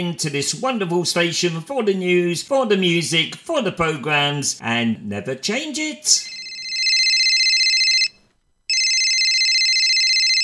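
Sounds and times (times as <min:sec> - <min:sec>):
speech: 0:00.0 - 0:06.4
telephone ringing with an electronic trill: 0:06.2 - 0:10.4.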